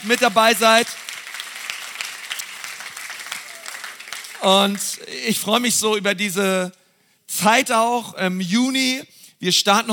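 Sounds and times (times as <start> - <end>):
speech: 0.0 - 1.0, 4.4 - 9.9
audience applause: 0.0 - 5.0.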